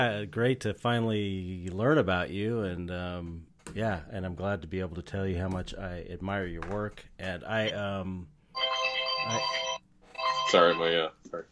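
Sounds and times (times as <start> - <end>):
speech: 0.0 - 8.3, 9.2 - 9.7, 10.5 - 11.5
FaceTime video call ringtone on a phone: 8.5 - 11.1.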